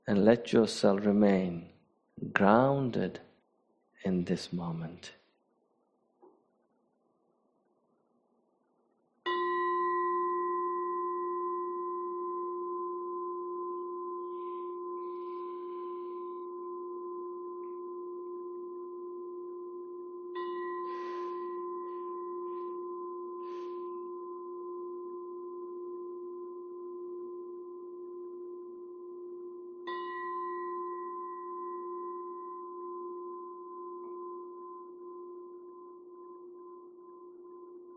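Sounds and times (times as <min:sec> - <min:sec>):
speech: 0:00.1 - 0:03.3, 0:04.0 - 0:05.2
meditation bell: 0:09.2 - 0:37.9.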